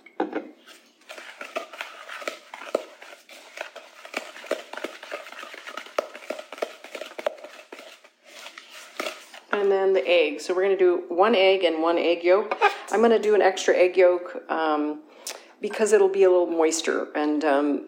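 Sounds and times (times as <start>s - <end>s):
spoon stirring vanilla into gluten-free oatmeal cookie dough in a bowl: 0.5s - 9.7s
speech: 9.8s - 17.8s.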